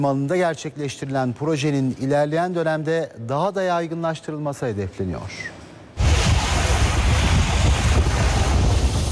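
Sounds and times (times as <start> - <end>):
speech: 0.0 - 5.6
Black Sea waves at a wave power plant in a harbour: 6.0 - 9.1
wind buffeting on the microphone: 6.0 - 9.1.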